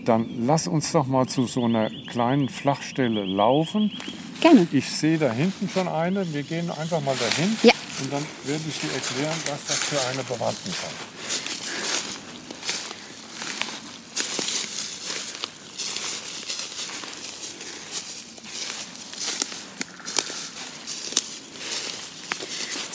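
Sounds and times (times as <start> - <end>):
speech: 0.0 - 11.4
footsteps through deep dry fallen leaves in forest: 4.0 - 22.9
twigs snapping: 8.8 - 22.9.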